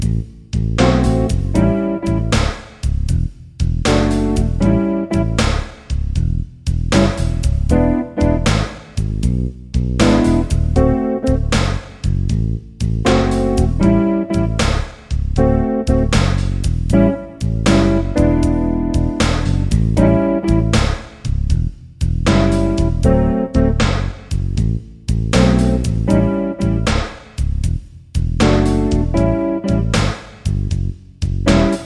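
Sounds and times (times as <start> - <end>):
backing track for improvisation practice: 0.0 - 31.8.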